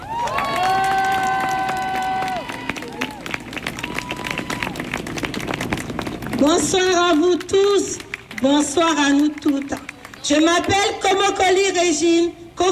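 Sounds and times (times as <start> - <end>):
crowd cheering and whooping: 0.0 - 5.7
audience applause: 0.0 - 6.6, 7.4 - 10.8
speech: 6.4 - 12.7.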